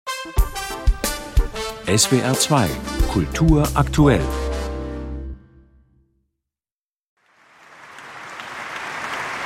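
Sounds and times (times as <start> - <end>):
speech: 0.2 - 0.5, 1.9 - 4.5
short applause in the Berliner Philharmonie: 7.4 - 9.4.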